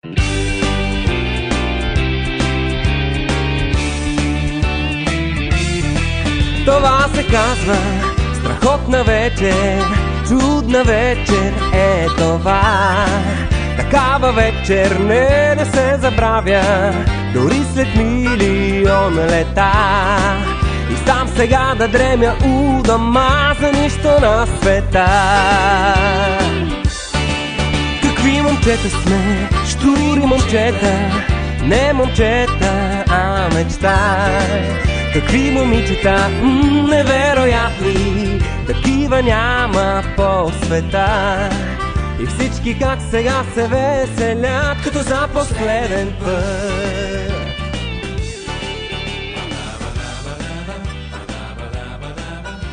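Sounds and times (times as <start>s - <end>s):
rock and roll music: 0.0s - 52.7s.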